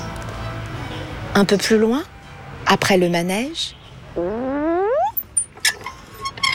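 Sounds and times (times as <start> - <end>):
speech: 1.4 - 2.1, 2.7 - 4.5
green swings creaking: 4.2 - 6.5.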